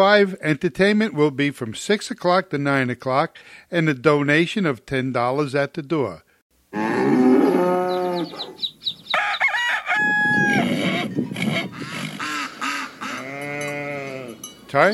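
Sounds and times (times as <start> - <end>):
speech: 0.0 - 7.2, 14.7 - 14.9
bull mooing: 6.7 - 8.6, 13.1 - 14.4
rooster crowing: 6.9 - 11.0
farmyard birds clucking: 7.3 - 14.9.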